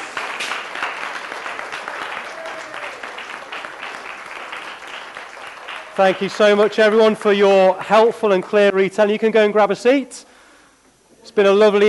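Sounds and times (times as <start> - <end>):
round of applause: 0.0 - 7.6
speech: 6.0 - 10.3, 11.4 - 11.8.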